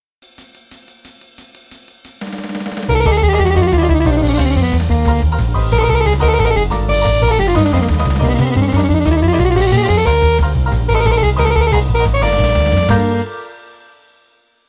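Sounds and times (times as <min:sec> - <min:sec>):
mechanical chromatic motif: 0:02.9 - 0:14.2.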